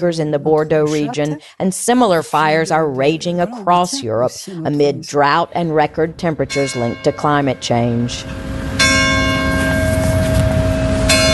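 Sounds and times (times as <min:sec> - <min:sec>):
speech: 0:00.0 - 0:08.7
church bells ringing in Saint-Jean-d'Illac: 0:06.3 - 0:11.3.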